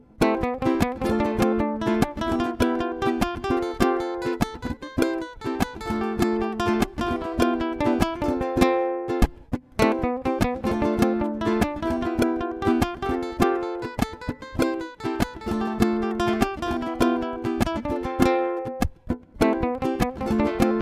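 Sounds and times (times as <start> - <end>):
melody exercise in C: 0.2 - 18.8, 19.4 - 20.8.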